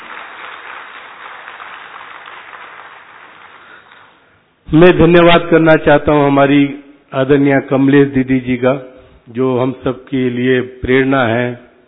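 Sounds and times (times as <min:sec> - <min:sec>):
audience applause: 0:00.0 - 0:04.2
speech: 0:04.7 - 0:11.7.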